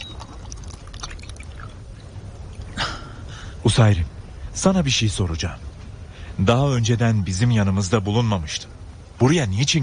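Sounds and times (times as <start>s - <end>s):
water being poured for a drink: 0.0s - 2.8s
low rumbling background: 0.0s - 9.8s
speech: 3.6s - 5.7s, 6.4s - 9.8s.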